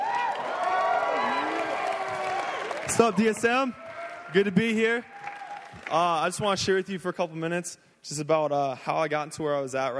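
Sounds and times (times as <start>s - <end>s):
audience cheering and whooping to welcome a speaker: 0.0s - 5.9s
speech: 2.9s - 5.1s, 5.8s - 9.9s.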